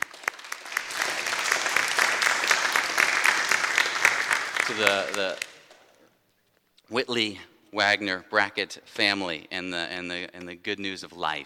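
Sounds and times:
crowd applauding: 0.0s - 5.8s
speech: 4.7s - 5.5s, 6.9s - 11.4s.

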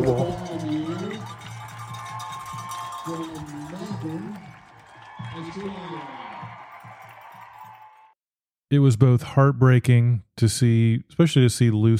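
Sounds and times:
speech: 0.0s - 0.5s, 8.7s - 11.9s
crowd cheering at a race finish: 0.0s - 8.2s.

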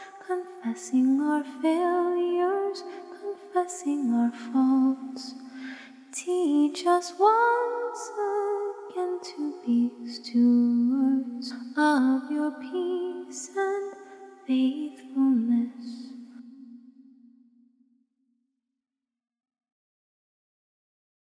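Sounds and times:
a cappella hymn singing: 0.0s - 16.4s.

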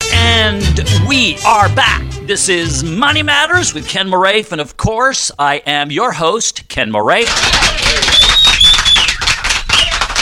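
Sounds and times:
speech: 0.5s - 8.1s
crowd applause: 7.2s - 10.2s.

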